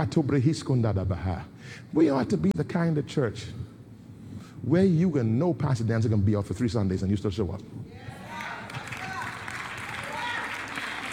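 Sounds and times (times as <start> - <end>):
speech: 0.0 - 3.7, 4.6 - 7.8
audience clapping: 8.3 - 11.1.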